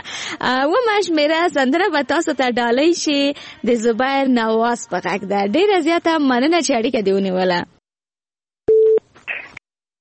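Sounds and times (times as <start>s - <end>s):
speech: 0.3s - 7.7s
telephone busy tone after a caller's line disconnects: 8.7s - 9.0s.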